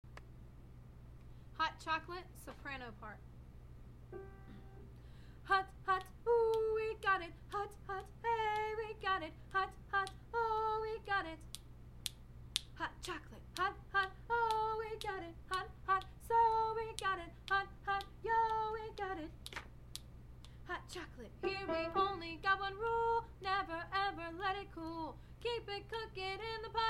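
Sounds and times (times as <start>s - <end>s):
soprano singing: 5.4s - 11.4s, 12.8s - 19.3s, 20.7s - 26.8s.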